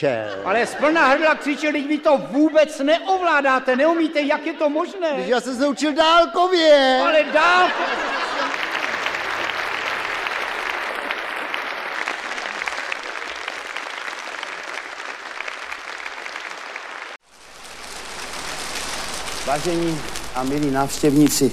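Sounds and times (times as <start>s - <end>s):
laughter: 0.0s - 2.7s, 6.8s - 13.7s
speech: 0.0s - 8.3s, 19.5s - 21.5s
crowd clapping: 7.6s - 21.5s.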